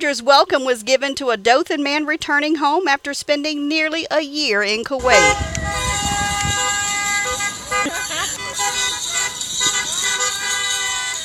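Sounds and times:
speech: 0:00.0 - 0:05.8
car horns blaring at a drive-by parade: 0:05.0 - 0:11.2
loud cheers: 0:05.0 - 0:11.2.

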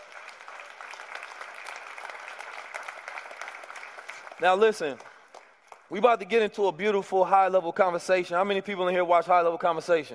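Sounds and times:
audience applause: 0:00.0 - 0:05.6
speech: 0:04.4 - 0:05.1, 0:05.9 - 0:10.1.

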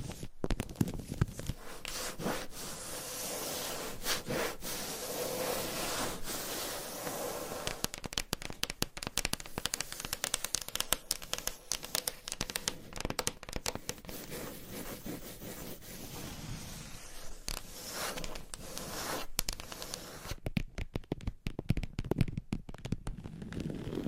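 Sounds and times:
soft bright rustle: 0:00.0 - 0:13.1, 0:13.7 - 0:20.4
scratching and tapping triggers: 0:00.0 - 0:16.2, 0:16.9 - 0:24.0.

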